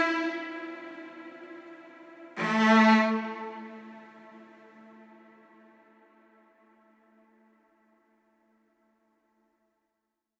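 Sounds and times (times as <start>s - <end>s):
solo cello melody: 0.0s - 5.9s.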